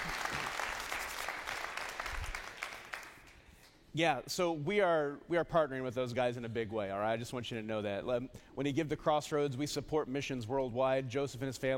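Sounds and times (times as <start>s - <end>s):
audience applause: 0.0s - 3.3s
speech: 3.9s - 11.7s.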